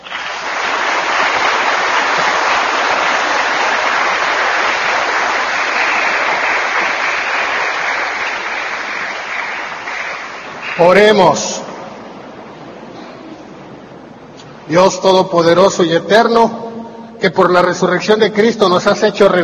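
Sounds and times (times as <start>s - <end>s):
audience applauding: 0.0s - 11.4s
speech: 10.8s - 11.6s, 14.7s - 16.6s, 17.2s - 19.4s.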